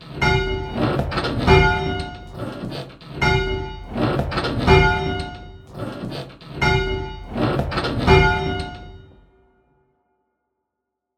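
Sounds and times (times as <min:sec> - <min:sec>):
bells ringing: 0:00.1 - 0:02.4, 0:03.2 - 0:05.7, 0:06.6 - 0:07.4, 0:08.0 - 0:09.2.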